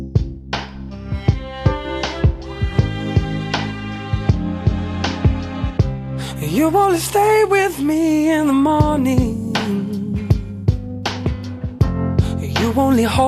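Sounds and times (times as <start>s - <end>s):
love song playing: 1.0s - 13.2s
speech: 6.5s - 10.1s, 12.8s - 13.2s.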